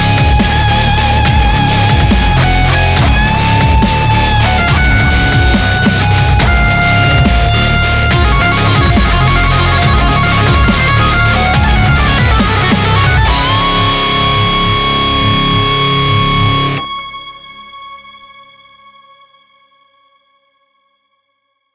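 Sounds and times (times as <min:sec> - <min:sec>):
nuclear dubstep music: 0:00.0 - 0:17.4.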